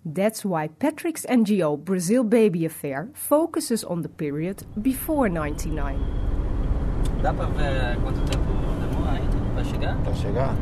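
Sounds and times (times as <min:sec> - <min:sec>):
speech: 0:00.0 - 0:06.3, 0:07.2 - 0:10.6
car driving toward a small town in Brazil: 0:04.2 - 0:10.6.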